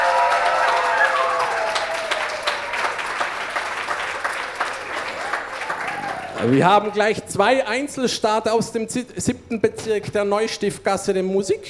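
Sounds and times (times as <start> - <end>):
audience applause: 0.0 - 7.1
speech: 6.4 - 11.6.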